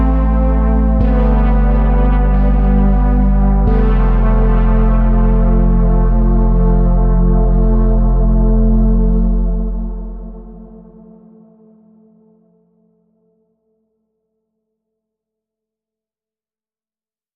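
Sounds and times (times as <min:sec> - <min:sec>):
synth music without lead synth: 0:00.0 - 0:12.4.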